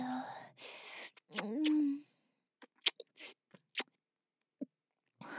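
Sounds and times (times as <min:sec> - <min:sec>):
kissing sound: 0:00.9 - 0:01.9, 0:02.6 - 0:03.9.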